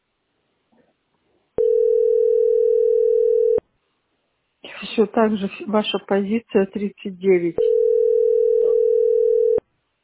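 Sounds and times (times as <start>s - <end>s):
telephone line tone from a disconnected phone: 1.6s - 3.6s, 7.6s - 9.6s
speech: 5.0s - 7.7s.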